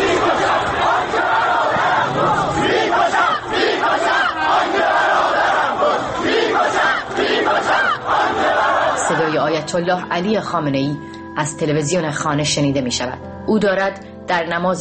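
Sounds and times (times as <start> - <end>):
protesters' crowd roar on a Tehran street: 0.0 - 9.2
protesters shouting and crying: 0.0 - 9.3
speech: 9.6 - 14.7.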